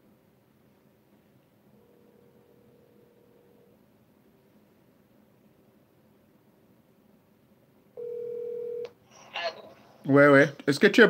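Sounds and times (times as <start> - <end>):
phone call ringing: 1.8 - 3.8, 8.0 - 9.0
speech: 10.1 - 11.0.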